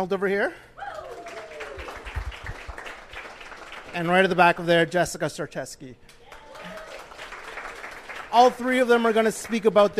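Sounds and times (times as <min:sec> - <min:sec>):
speech: 0:00.0 - 0:00.9, 0:03.9 - 0:06.2, 0:08.3 - 0:09.9
audience applause: 0:01.1 - 0:04.1, 0:06.3 - 0:09.9.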